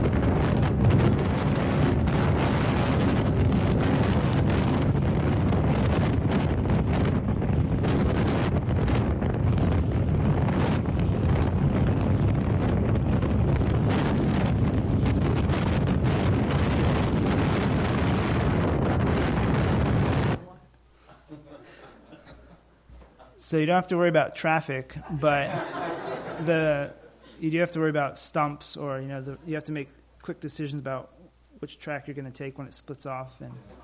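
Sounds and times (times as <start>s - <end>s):
wind buffeting a microphone during road travel: 0.0s - 20.4s
laughter: 21.0s - 23.4s, 24.9s - 27.5s
speech: 23.5s - 25.8s, 26.4s - 33.8s.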